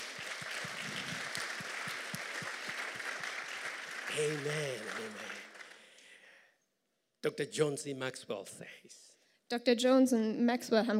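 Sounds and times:
audience applause: 0:00.0 - 0:06.2
speech: 0:04.2 - 0:05.4, 0:07.2 - 0:10.9.

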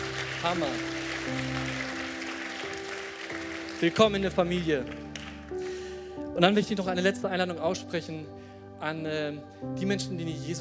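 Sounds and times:
audience applause: 0:00.0 - 0:05.6
speech: 0:00.4 - 0:01.9, 0:03.8 - 0:05.6, 0:06.4 - 0:10.5.

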